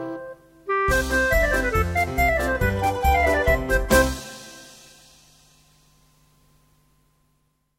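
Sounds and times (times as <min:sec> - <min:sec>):
clarinet trio: 0:00.1 - 0:04.3.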